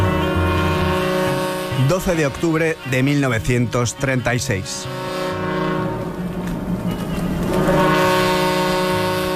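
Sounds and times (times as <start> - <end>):
harbor ship sirens sounding: 0.0 - 9.3
speech: 1.8 - 5.1.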